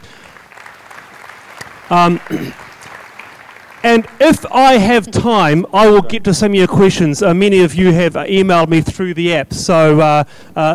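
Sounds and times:
audience applause: 0:00.0 - 0:05.1
speech: 0:01.9 - 0:02.6, 0:03.8 - 0:10.7.

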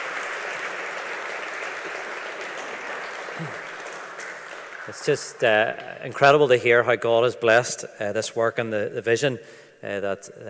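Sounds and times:
audience applause: 0:00.0 - 0:06.2
speech: 0:03.4 - 0:03.6, 0:04.9 - 0:10.4.

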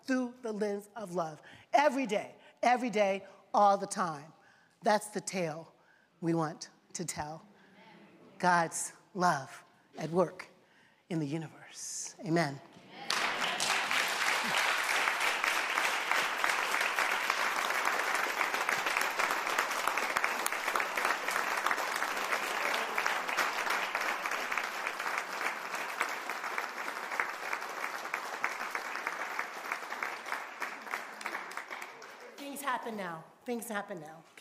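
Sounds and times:
speech: 0:00.1 - 0:07.5, 0:08.4 - 0:10.5, 0:11.1 - 0:12.7, 0:33.5 - 0:34.3
audience standing and clapping after sermon: 0:12.9 - 0:33.0.

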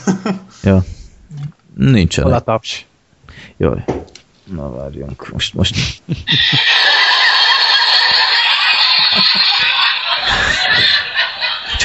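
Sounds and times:
speech: 0:00.1 - 0:01.0, 0:01.8 - 0:02.9, 0:03.5 - 0:06.8
canned laugh track of many people laughing and cackling: 0:05.8 - 0:11.8.

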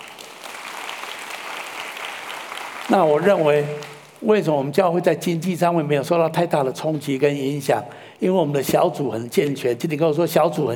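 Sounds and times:
audience applause: 0:00.0 - 0:04.2
speech: 0:02.9 - 0:10.7.

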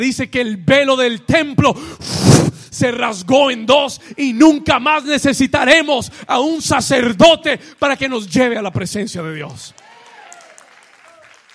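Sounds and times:
speech: 0:00.0 - 0:09.8
audience applause: 0:09.8 - 0:11.5.

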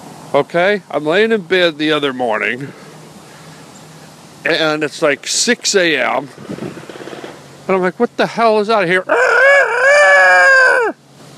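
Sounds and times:
speech: 0:00.3 - 0:02.8, 0:04.4 - 0:06.6, 0:07.7 - 0:09.3
rooster crowing: 0:09.1 - 0:11.0.

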